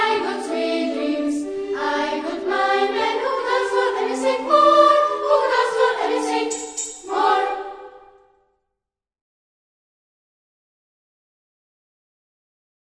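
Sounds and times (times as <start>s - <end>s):
chamber choir singing: 0.0s - 8.2s.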